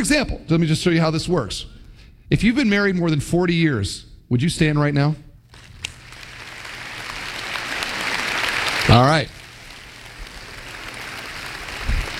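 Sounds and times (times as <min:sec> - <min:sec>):
speech: 0:00.0 - 0:05.2, 0:08.9 - 0:09.4
audience applause: 0:05.5 - 0:12.1.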